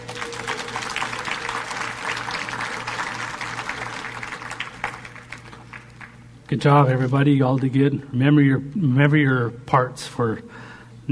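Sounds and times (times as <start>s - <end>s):
audience applause: 0.0s - 6.2s
speech: 6.5s - 11.1s.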